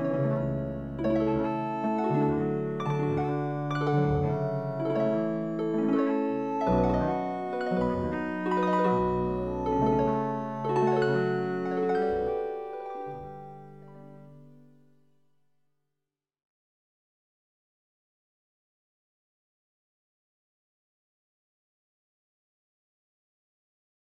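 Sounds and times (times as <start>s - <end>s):
chord progression: 0.0s - 14.9s.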